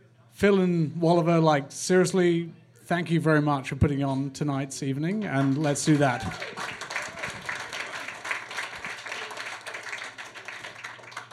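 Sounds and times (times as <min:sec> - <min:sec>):
speech: 0:00.4 - 0:06.7
audience applause: 0:05.3 - 0:11.3.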